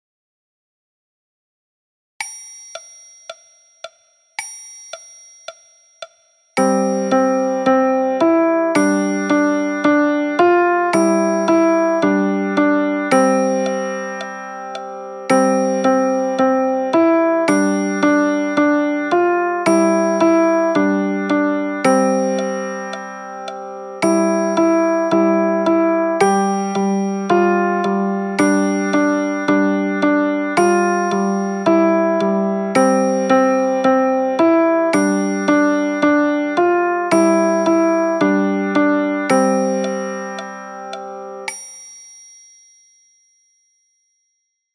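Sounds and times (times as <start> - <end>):
piano music: 6.6 - 41.5.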